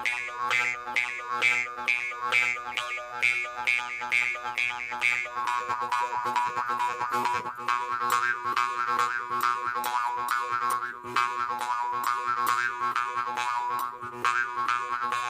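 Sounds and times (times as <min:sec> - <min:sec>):
jew harp: 0:00.0 - 0:15.2.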